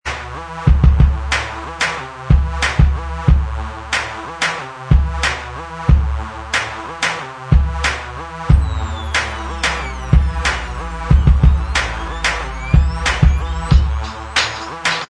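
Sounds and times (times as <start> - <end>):
instrumental backing track: 0.1 - 15.0.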